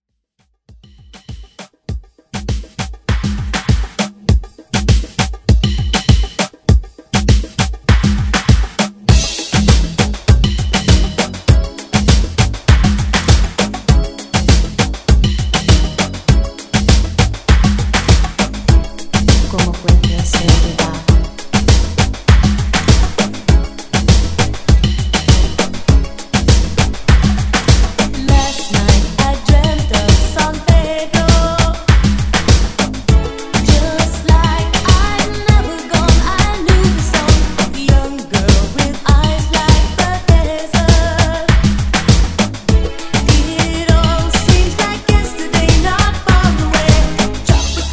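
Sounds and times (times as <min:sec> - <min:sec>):
1980s moombah drum beat: 0:00.7 - 0:47.9.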